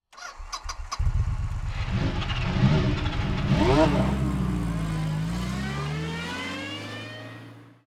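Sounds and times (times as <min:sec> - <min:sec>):
bike: 0:00.1 - 0:05.8.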